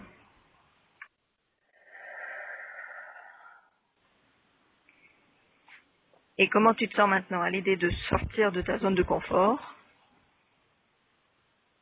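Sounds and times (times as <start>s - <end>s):
person drawing a deep breath in: 1.6s - 4.0s
speech: 6.4s - 9.8s.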